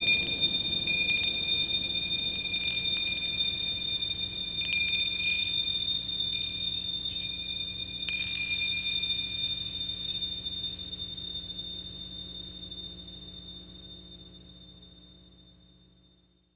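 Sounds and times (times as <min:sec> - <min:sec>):
handbell ringing: 0:00.0 - 0:11.8.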